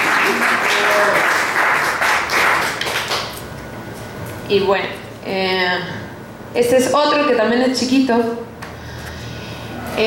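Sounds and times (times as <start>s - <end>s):
audience applause: 0.0s - 3.4s
speech: 4.5s - 8.4s.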